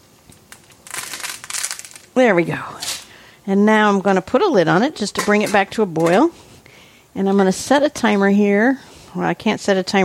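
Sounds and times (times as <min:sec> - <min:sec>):
dry spaghetti noodles being broken in half: 0:00.3 - 0:02.2
speech: 0:02.2 - 0:06.4, 0:07.2 - 0:10.0.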